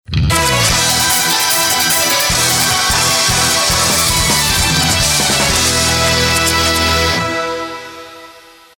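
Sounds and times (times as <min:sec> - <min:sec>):
versus music: 0:00.3 - 0:08.4.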